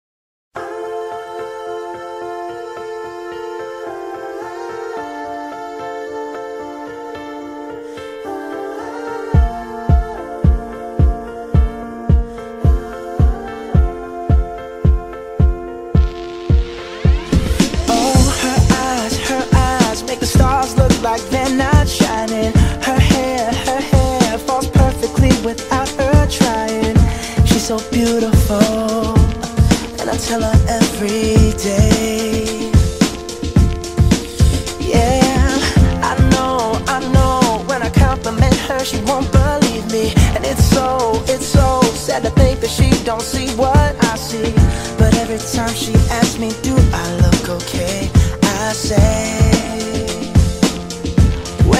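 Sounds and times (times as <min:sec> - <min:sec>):
music: 0:00.6 - 0:51.7.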